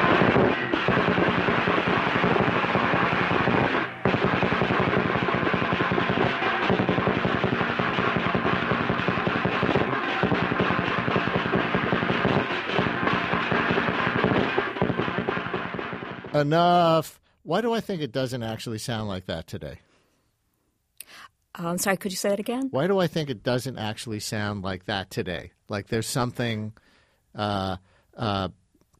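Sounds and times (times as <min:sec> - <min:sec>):
street parade gongs: 0:00.0 - 0:16.5
street parade drums: 0:00.0 - 0:16.7
speech: 0:16.4 - 0:19.8, 0:21.6 - 0:28.9.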